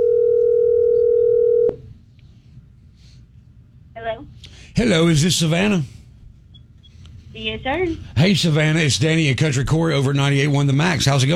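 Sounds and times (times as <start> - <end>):
telephone dial tone: 0.0 - 1.8
speech: 4.0 - 6.0, 7.4 - 11.3.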